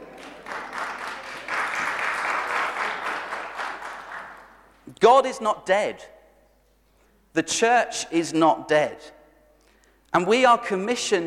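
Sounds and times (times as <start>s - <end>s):
large audience applause and cheering: 0.0s - 4.6s
speech: 5.0s - 6.1s, 7.4s - 9.2s, 10.1s - 11.2s.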